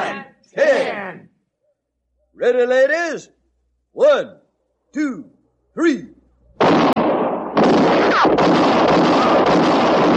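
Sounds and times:
speech: 2.4s - 6.2s
gunshots in a 1958 Western radio drama: 6.6s - 10.1s.

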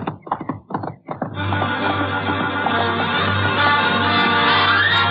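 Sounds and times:
horse galloping and clattering: 0.0s - 5.0s.

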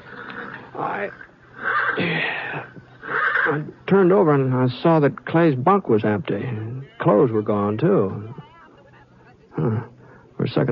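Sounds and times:
agitated horse whinnying in corral: 0.0s - 2.2s, 3.0s - 3.7s
speech: 0.8s - 1.3s, 2.0s - 2.8s, 3.5s - 8.4s, 9.6s - 10.7s.

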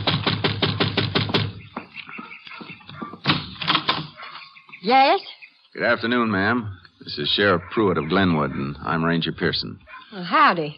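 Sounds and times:
firm knocks on a wooden door: 0.0s - 1.9s
speech: 4.8s - 10.7s.

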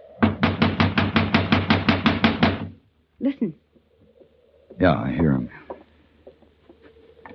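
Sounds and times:
knocking on a locked door: 0.2s - 2.8s
speech: 3.2s - 3.7s, 4.8s - 5.6s.

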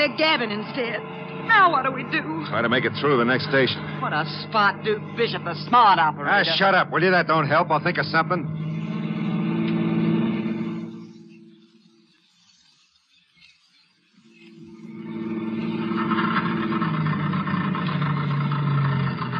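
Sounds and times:
speech: 0.0s - 8.6s
car engine sputtering out of gas: 0.0s - 11.9s, 14.6s - 19.3s.

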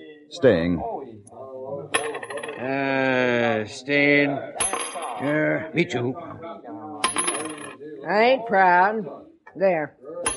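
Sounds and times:
speech: 0.3s - 0.9s, 3.6s - 6.5s, 8.1s - 10.0s
coin tossed onto the table as a poker bet: 1.9s - 2.7s, 4.6s - 5.3s, 7.0s - 7.8s.

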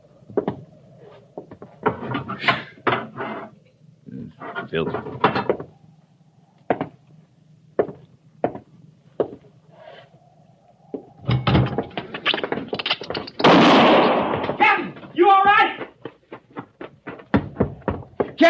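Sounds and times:
scattered knocks and thumps: 0.3s - 0.6s, 1.4s - 3.2s, 4.8s - 5.7s, 6.7s - 7.0s, 11.0s - 13.6s, 15.8s - 18.4s
gunshot fired to kill a rat: 13.4s - 14.6s.

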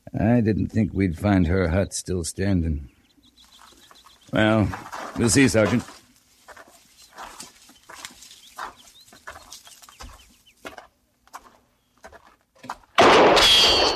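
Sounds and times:
bird-like calls: 0.0s - 12.2s
faint clucking: 0.0s - 12.3s
speech: 0.2s - 3.0s, 4.3s - 6.0s
gunshot fired from a hut: 13.0s - 13.9s.

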